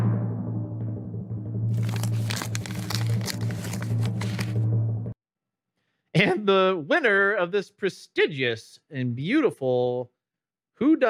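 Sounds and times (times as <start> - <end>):
low hum: 0.0 - 5.2
envelope torn open at an awards presentation: 1.7 - 4.6
speech: 6.2 - 10.2, 10.8 - 11.0.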